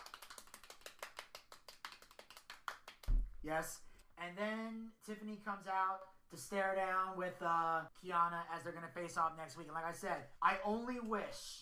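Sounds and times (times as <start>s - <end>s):
soft polite golf clapping: 0.0s - 3.3s
speech: 3.4s - 11.6s.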